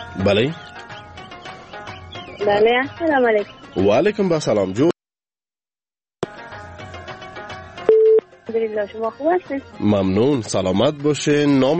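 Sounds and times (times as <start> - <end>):
speech: 0.2 - 0.7, 2.4 - 4.9, 8.8 - 11.7
telephone line tone of a listener's call being connected: 7.9 - 8.2.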